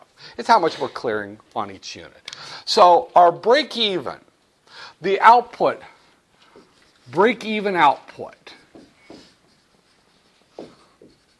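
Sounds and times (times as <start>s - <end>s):
speech: 0.3s - 4.3s, 5.0s - 5.9s, 7.1s - 8.6s
scratchy writing strokes: 6.4s - 11.3s.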